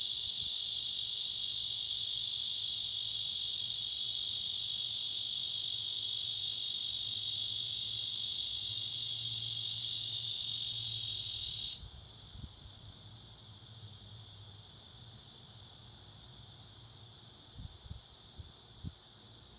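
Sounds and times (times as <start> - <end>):
cicada buzzing: 0.0 - 11.9.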